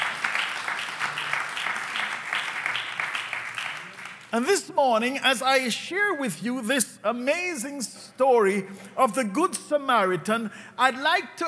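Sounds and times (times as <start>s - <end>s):
audience applauding: 0.0s - 4.5s
speech: 4.3s - 11.4s.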